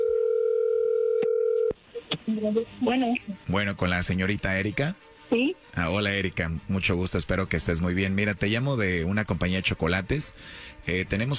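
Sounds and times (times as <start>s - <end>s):
telephone dialing tone: 0.0s - 1.8s
speech: 2.3s - 11.3s.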